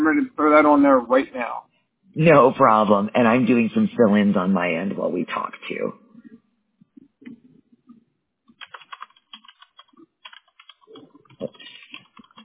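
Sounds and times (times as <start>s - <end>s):
speech: 0.6s - 6.0s
typing on a computer keyboard during a phone call: 8.5s - 12.4s.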